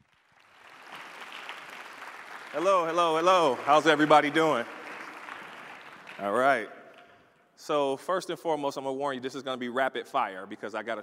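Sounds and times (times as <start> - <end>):
audience applause welcoming a comedian to the stage: 0.0 - 7.2
speech: 2.5 - 4.8, 6.2 - 6.8, 7.6 - 11.0.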